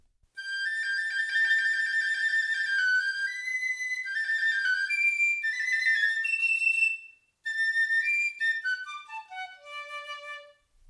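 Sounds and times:
small flute playing a bright high-pitched melody: 0.4 - 10.7.

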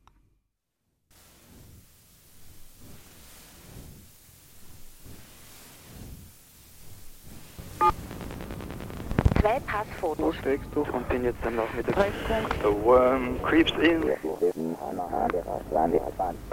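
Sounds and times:
telephone line noise: 7.8 - 16.5
speech: 9.5 - 16.5.

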